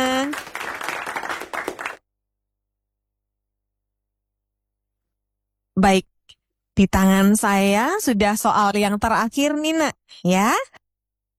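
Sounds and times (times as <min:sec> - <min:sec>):
group clapping: 0:00.0 - 0:02.0
speech: 0:05.8 - 0:06.1, 0:06.8 - 0:10.8.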